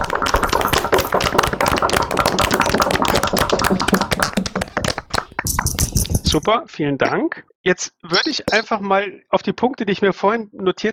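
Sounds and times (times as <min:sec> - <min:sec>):
group clapping: 0:00.0 - 0:06.4
knocking into microphones: 0:00.0 - 0:06.5
speech: 0:06.4 - 0:10.9.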